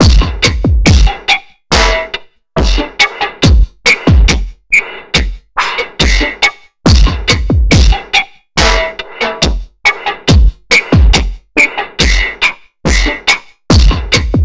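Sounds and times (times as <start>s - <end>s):
trip hop music: 0.0s - 14.4s.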